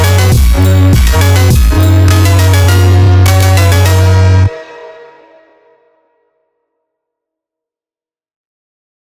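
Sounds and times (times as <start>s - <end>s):
house Christmas holiday phonk slowed chill remix: 0.0s - 5.9s.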